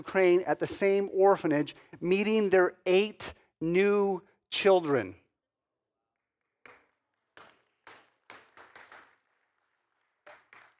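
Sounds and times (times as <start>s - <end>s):
speech: 0.0s - 5.2s
audience clapping: 6.4s - 10.7s.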